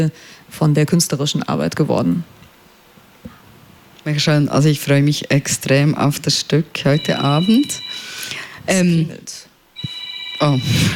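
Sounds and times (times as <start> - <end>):
speech: 0.0 - 2.4, 4.0 - 9.5, 10.4 - 10.9
telephone ringing in the room: 6.9 - 8.3, 9.8 - 10.9.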